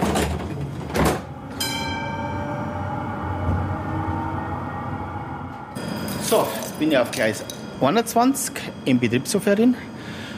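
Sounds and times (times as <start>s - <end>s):
tram door sliding: 0.0s - 6.5s
low rumble: 1.2s - 8.8s
speech: 6.3s - 9.9s.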